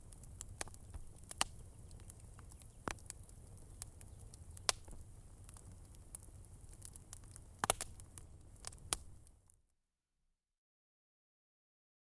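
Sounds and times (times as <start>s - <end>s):
campfire in the countryside: 0.0s - 9.6s.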